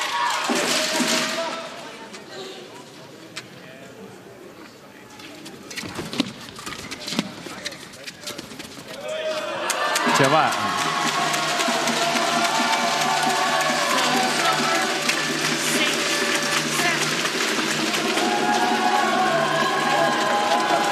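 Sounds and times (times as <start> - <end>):
excited crowd of spectators cheering: 0.0 - 2.0, 9.0 - 20.9
speech: 10.2 - 10.9.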